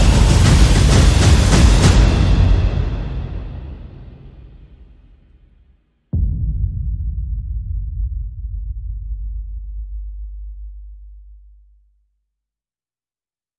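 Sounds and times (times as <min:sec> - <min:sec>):
percussion: 0:00.0 - 0:10.8.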